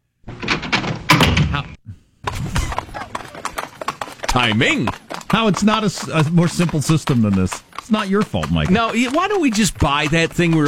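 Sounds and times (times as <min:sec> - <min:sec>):
speech: 0:01.5 - 0:01.8, 0:04.4 - 0:10.6
horse hooves clip-clopping: 0:02.3 - 0:10.6.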